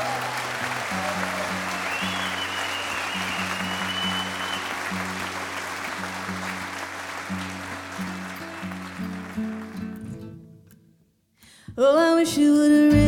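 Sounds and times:
audience applause: 0.0s - 10.1s
speech: 11.8s - 12.9s.

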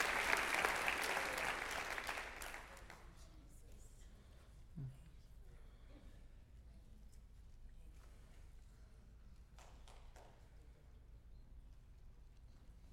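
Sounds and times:
audience clapping: 0.0s - 3.1s.

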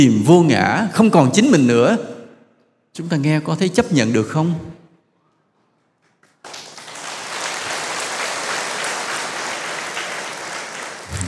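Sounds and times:
speech: 0.0s - 2.1s, 3.0s - 4.8s
audience applause at a Buddhist monk's talk: 6.0s - 11.2s.

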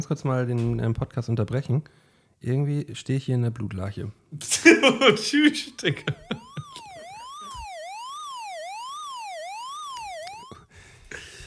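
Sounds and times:
speech: 0.0s - 6.2s
laughter: 4.5s - 6.9s
loud alarm siren: 6.0s - 10.6s.

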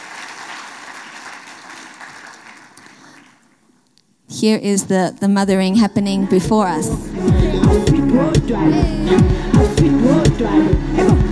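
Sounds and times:
audience applause: 0.0s - 3.6s
speech: 4.3s - 11.2s.

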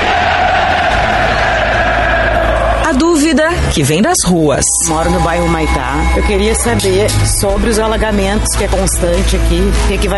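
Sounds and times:
football crowd shouting together: 0.0s - 3.4s
speech: 3.3s - 10.1s.

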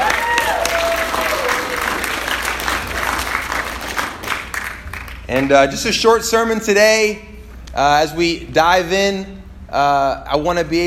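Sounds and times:
audience round of applause: 0.0s - 5.3s
speech: 5.3s - 10.8s.

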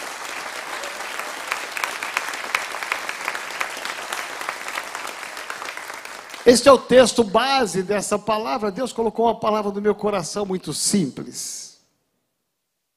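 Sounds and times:
audience applause: 0.0s - 6.9s
speech: 6.5s - 11.7s.

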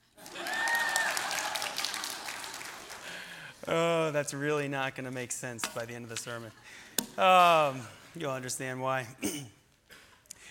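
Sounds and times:
audience applause: 0.1s - 3.5s
speech: 3.7s - 9.6s.

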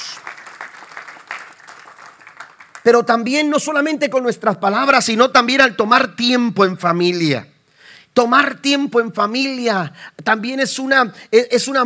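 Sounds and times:
loud audience applause: 0.0s - 2.9s
speech: 2.8s - 7.5s, 8.2s - 11.8s.

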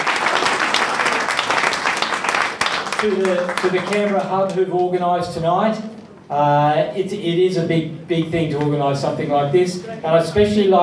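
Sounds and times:
audience applause: 0.0s - 4.6s
speech: 3.0s - 10.8s.

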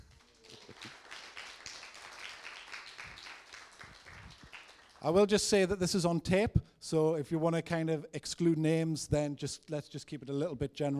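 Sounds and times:
audience clapping: 0.0s - 5.5s
speech: 5.0s - 10.9s.

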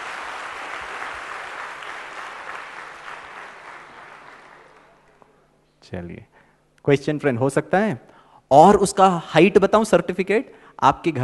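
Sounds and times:
audience applause: 0.0s - 5.2s
speech: 5.9s - 11.2s.

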